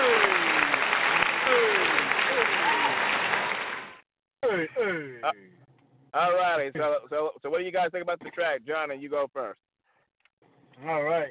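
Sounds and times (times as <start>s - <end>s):
applause: 0.0s - 4.0s
speech: 5.3s - 9.6s, 10.8s - 11.3s.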